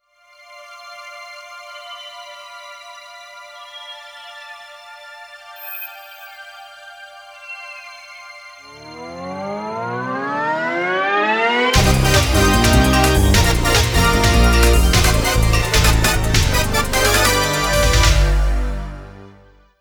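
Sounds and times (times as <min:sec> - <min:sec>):
game stage start jingle: 0:08.7 - 0:19.6.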